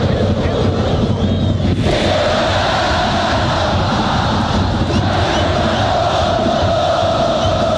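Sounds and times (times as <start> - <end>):
football crowd roaring at Copa Chile match at Estadio Santa Laura: 0.0 - 7.7.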